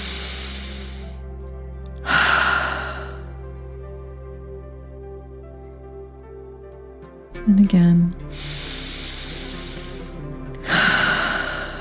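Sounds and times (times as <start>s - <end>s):
deep cleansing breath during a guided breathwork session: 0.0s - 1.4s, 2.0s - 3.5s, 8.3s - 11.7s
soft sustained music: 0.0s - 11.7s
speech: 7.4s - 8.6s.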